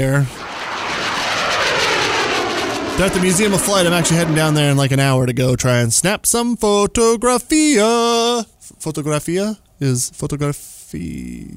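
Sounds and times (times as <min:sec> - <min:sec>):
speech: 0:00.0 - 0:00.5, 0:03.0 - 0:11.5
jet aircraft flying overhead: 0:00.0 - 0:05.4.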